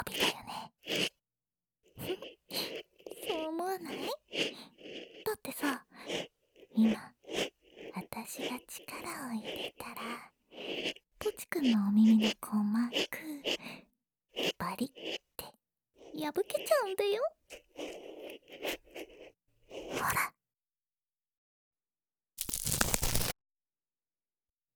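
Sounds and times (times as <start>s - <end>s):
ear cleaning of the right ear: 0.1s - 1.1s, 2.1s - 13.8s, 14.4s - 15.2s, 16.0s - 20.0s, 22.4s - 23.3s.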